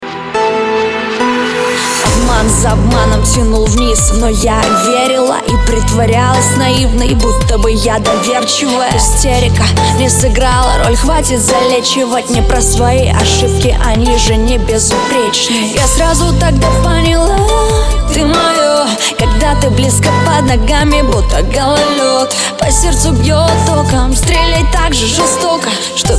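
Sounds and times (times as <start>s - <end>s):
dubstep remix: 0.0s - 26.1s.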